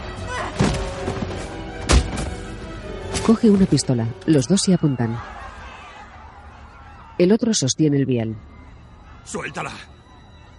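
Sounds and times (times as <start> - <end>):
kicks and blows in a close-quarters fist fight: 0.4 - 2.5
speech: 3.3 - 5.4, 7.2 - 8.5, 9.2 - 9.9
laughter: 4.8 - 7.1.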